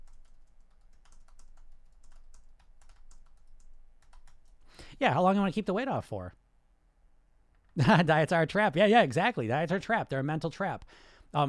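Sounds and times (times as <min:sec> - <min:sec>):
soft typing on a computer keyboard as notes are written down: 0:00.0 - 0:04.7
speech: 0:05.0 - 0:06.4, 0:07.8 - 0:11.4.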